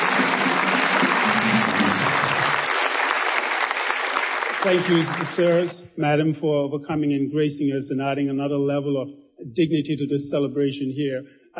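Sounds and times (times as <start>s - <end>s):
audience applause: 0.0s - 5.8s
speech: 4.6s - 11.5s.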